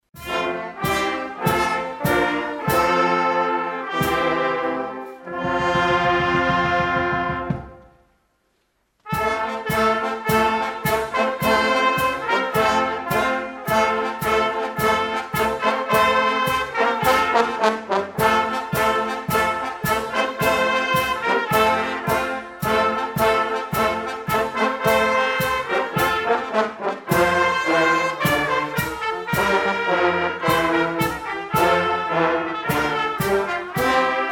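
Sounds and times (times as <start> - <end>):
fanfare: 0.1 - 8.0, 9.0 - 34.2.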